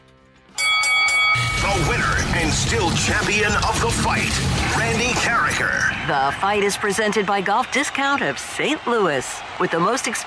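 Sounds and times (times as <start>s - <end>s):
boxing ring bell: 0.6s - 2.0s
speech: 1.8s - 10.2s.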